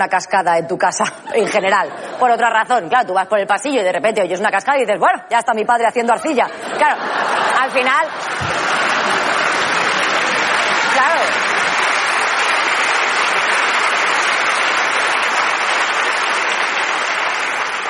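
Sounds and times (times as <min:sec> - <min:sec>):
speech: 0:00.0 - 0:08.7
laughter: 0:06.2 - 0:12.3
audience clapping: 0:08.2 - 0:17.8.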